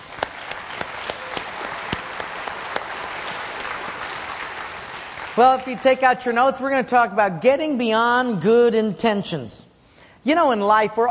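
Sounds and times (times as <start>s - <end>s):
audience applause: 0.0s - 5.8s
speech: 5.4s - 11.0s.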